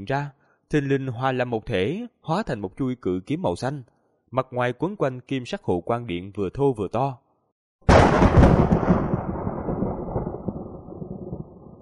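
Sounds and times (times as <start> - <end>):
speech: 0.0 - 7.2
thunder sound effect: 7.9 - 11.8.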